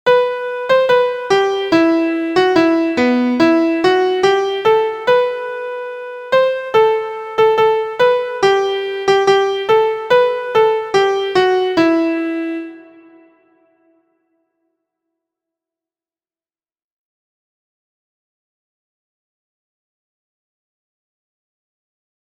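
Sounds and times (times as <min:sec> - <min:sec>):
MIDI music: 0:00.1 - 0:13.7.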